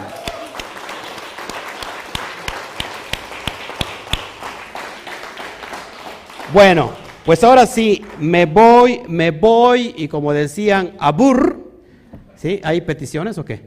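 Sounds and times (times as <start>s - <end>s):
applause: 0.0s - 9.2s
speech: 6.5s - 11.5s, 12.4s - 13.6s.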